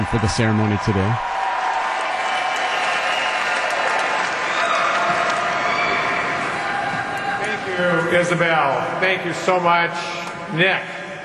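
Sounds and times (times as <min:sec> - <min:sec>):
speech: 0:00.0 - 0:01.4, 0:07.8 - 0:10.9
crowd applause: 0:00.0 - 0:08.4.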